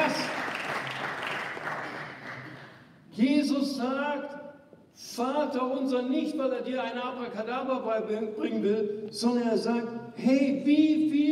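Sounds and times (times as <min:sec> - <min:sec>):
congregation applause during a sermon: 0:00.0 - 0:02.8
speech: 0:03.2 - 0:04.4, 0:05.2 - 0:11.3.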